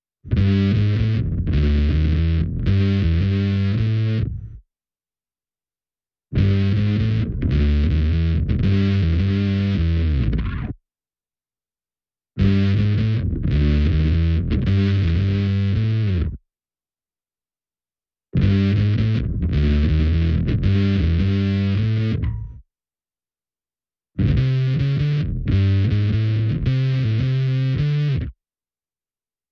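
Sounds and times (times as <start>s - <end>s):
bass: 0.2s - 4.7s, 6.3s - 10.8s, 12.4s - 16.4s, 18.3s - 22.7s, 24.2s - 28.4s.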